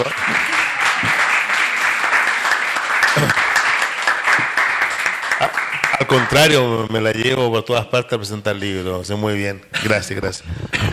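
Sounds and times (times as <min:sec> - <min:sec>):
speech: 0:00.0 - 0:00.3, 0:06.1 - 0:10.8
audience applause: 0:00.0 - 0:06.7.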